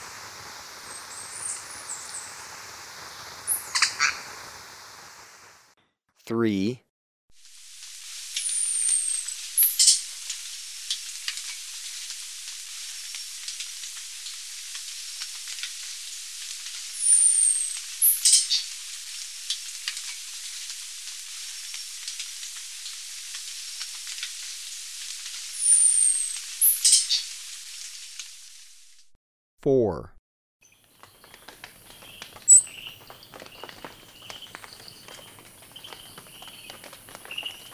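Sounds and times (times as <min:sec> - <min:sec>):
insect hiss: 0:00.0 - 0:05.8, 0:07.4 - 0:29.0, 0:30.8 - 0:37.7
golden-winged manakin call: 0:03.5 - 0:04.2, 0:08.4 - 0:10.0, 0:17.0 - 0:18.7, 0:25.6 - 0:27.3, 0:32.0 - 0:33.0
speech: 0:06.3 - 0:06.8, 0:29.9 - 0:30.1.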